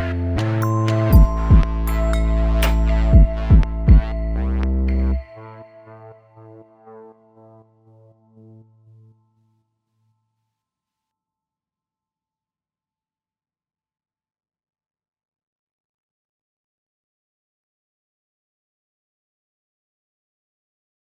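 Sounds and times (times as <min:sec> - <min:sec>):
kalimba: 0:00.0 - 0:05.3.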